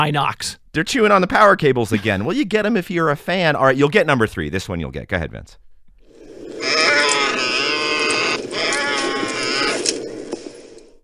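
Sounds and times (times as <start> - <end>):
speech: 0.0 - 5.6
Tauntaun creature rasping bleat-like groan: 6.6 - 10.1.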